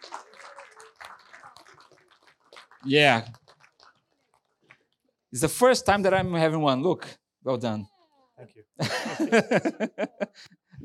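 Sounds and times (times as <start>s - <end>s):
applause: 0.0s - 4.9s
speech: 2.8s - 3.4s, 5.3s - 10.8s
laughter: 8.8s - 10.8s.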